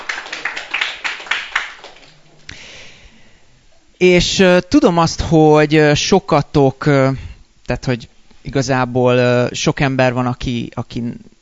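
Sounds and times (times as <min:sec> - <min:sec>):
audience clapping: 0:00.0 - 0:02.6
speech: 0:04.0 - 0:11.3.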